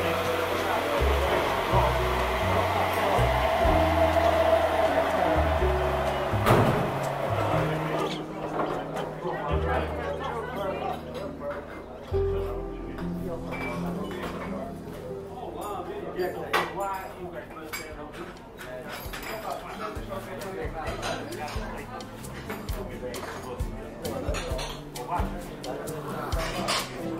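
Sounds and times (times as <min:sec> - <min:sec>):
café murmur of voices: 0:00.0 - 0:27.1.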